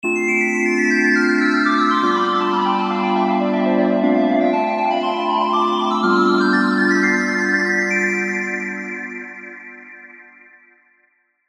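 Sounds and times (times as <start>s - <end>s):
keyboard music: 0.3s - 9.4s.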